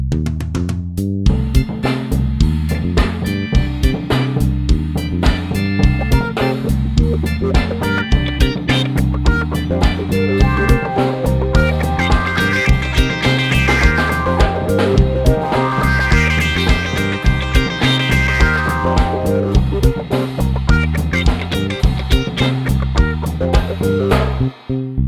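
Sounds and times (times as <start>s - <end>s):
funk mix: 0.1s - 25.0s.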